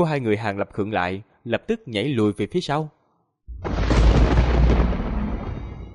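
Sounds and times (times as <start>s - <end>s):
speech: 0.0s - 3.0s
dense rolling thunder: 3.5s - 5.9s.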